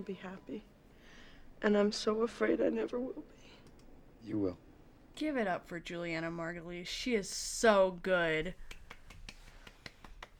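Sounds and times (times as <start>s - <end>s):
speech: 0.0s - 0.8s, 1.6s - 4.6s, 5.2s - 8.7s
light quiet hand clapping: 8.6s - 10.3s.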